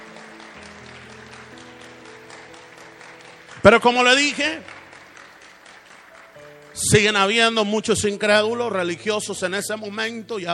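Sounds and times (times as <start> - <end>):
audience applause: 0.0 - 7.6
speech: 3.6 - 4.8, 6.8 - 10.5.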